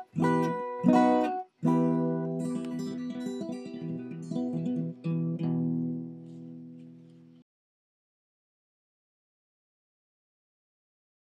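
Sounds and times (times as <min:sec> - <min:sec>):
lullaby guitar solo: 0:00.0 - 0:07.4.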